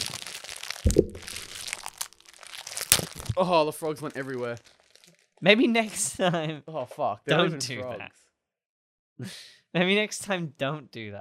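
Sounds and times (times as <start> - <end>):
crinkly plastic candy bag being opened: 0.0 - 5.9
speech: 3.4 - 4.8, 5.4 - 8.2, 9.2 - 11.1.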